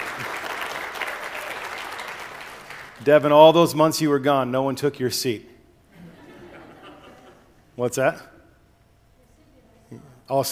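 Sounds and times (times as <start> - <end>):
audience applause: 0.0 - 3.0
speech: 3.0 - 5.5, 7.8 - 8.3, 9.9 - 10.5
laughter: 5.9 - 7.6.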